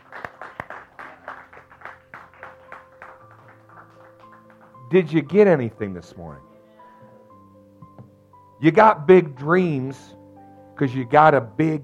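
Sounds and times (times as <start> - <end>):
audience hand clapping: 0.0 - 5.1
speech: 4.9 - 6.5, 8.6 - 10.2, 10.8 - 11.8.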